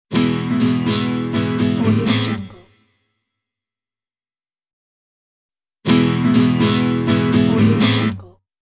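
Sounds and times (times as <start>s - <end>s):
nylon acoustic guitar with Spanish accent: 0.1s - 2.8s, 5.9s - 8.4s.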